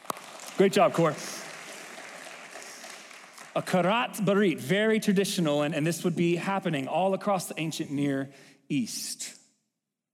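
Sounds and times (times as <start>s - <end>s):
crowd applause: 0.0s - 4.5s
speech: 0.6s - 1.3s, 3.6s - 9.4s.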